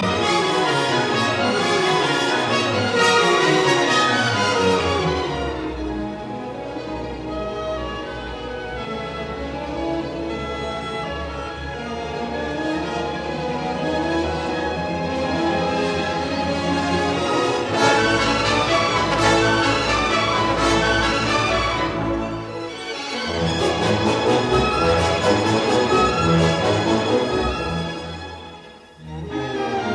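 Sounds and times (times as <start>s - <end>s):
symphony in C minor scherzo allegro moderato: 0.0s - 29.9s.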